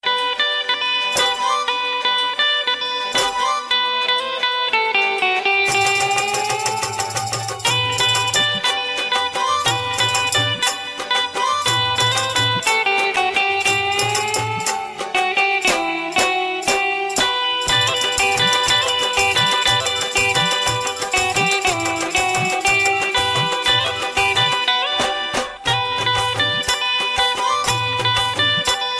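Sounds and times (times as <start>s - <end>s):
love tone: 1.0s - 28.9s.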